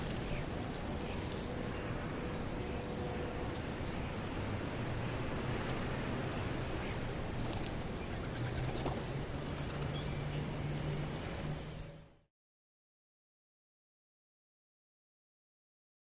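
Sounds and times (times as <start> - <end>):
pigeons in a city park: 0.0 - 3.1, 6.6 - 11.8
distant traffic roar: 0.0 - 12.3.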